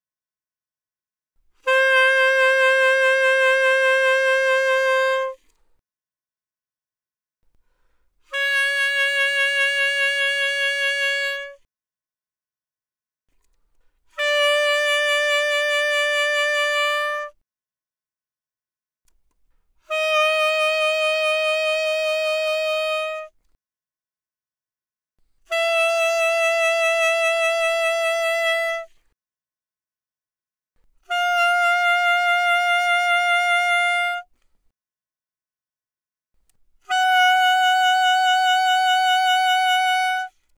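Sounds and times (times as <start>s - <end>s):
alto saxophone with vibrato played fortissimo: 1.6s - 5.5s, 8.3s - 11.6s, 14.2s - 17.4s, 19.9s - 23.4s, 25.5s - 29.0s, 31.0s - 34.3s, 36.9s - 40.4s.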